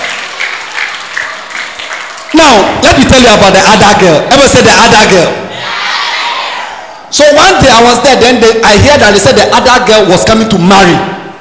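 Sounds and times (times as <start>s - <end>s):
audience applause: 0.0s - 2.5s
speech: 2.4s - 5.4s, 7.1s - 11.2s.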